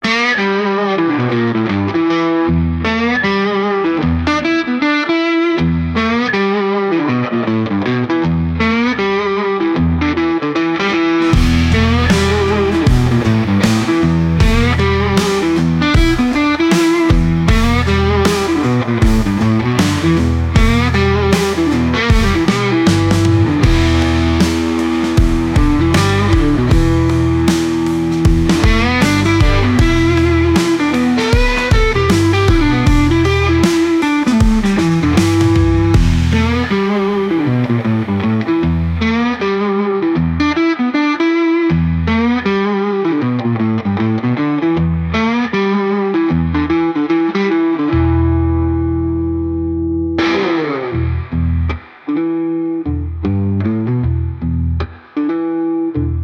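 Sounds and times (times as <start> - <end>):
music track at 156 BPM: 0.0 - 56.2.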